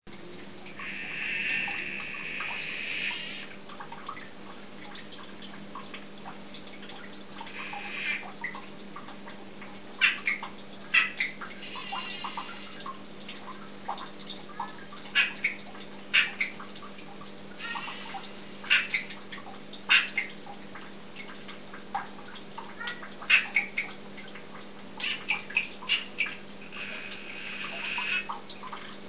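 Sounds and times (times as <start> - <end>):
Dendropsophus columbianus calling: 0.3 - 3.6, 7.4 - 8.4, 10.0 - 12.9, 15.1 - 16.6, 17.6 - 19.3, 19.9 - 20.4, 22.8 - 23.9, 25.0 - 28.4.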